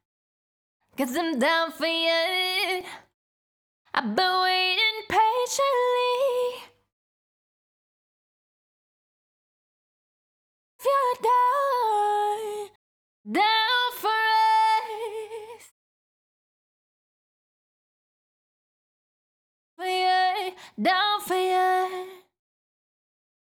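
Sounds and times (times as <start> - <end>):
pop vocals a cappella: 1.0 - 3.1, 3.9 - 6.8, 10.8 - 15.7, 19.8 - 22.3.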